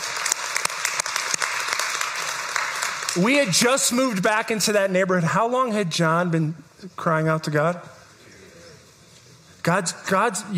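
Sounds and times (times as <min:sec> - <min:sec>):
crowd clapping: 0:00.0 - 0:04.6
speech: 0:03.2 - 0:08.0, 0:09.6 - 0:10.5.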